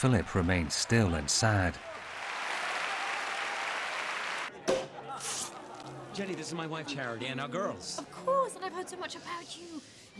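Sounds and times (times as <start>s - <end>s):
speech: 0.0s - 2.1s, 6.2s - 10.1s
audience applause: 0.0s - 4.5s.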